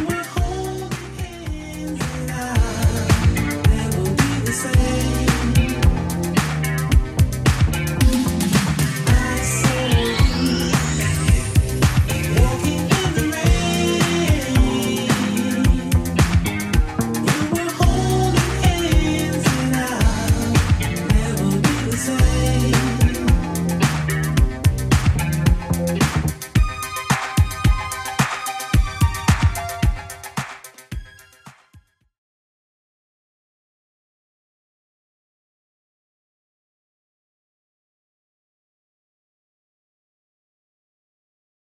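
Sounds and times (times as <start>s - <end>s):
1980s drum machine beat: 0.0s - 31.9s.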